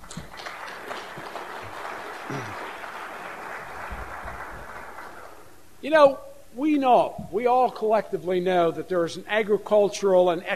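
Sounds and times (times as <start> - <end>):
audience round of applause: 0.0 - 5.5
speech: 5.9 - 10.5.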